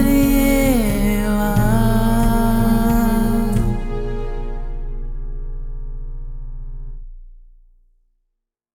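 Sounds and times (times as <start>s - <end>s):
unplugged cover song: 0.0s - 5.3s.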